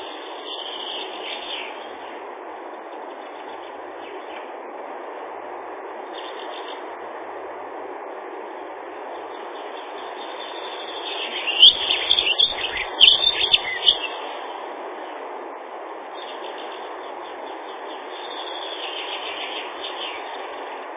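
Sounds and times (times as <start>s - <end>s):
Dunnock song, Prunella modularis, thin high twittering: 0.0s - 2.2s, 2.9s - 4.6s, 6.1s - 6.9s, 9.1s - 15.2s, 16.1s - 20.8s.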